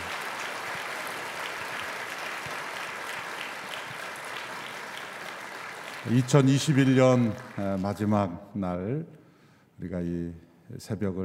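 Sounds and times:
sustained applause from a large crowd: 0.0s - 8.2s
speech: 6.0s - 9.2s, 9.8s - 11.2s.

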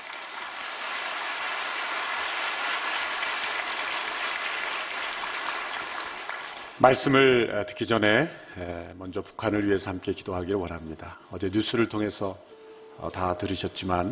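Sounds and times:
audience applause welcoming a speaker: 0.0s - 6.8s
speech: 6.8s - 14.1s.

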